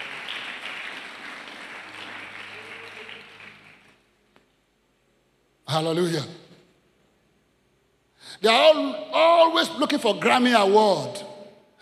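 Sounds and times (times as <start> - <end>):
audience clapping hands: 0.0 - 4.1
speech: 5.7 - 6.4, 8.4 - 11.2.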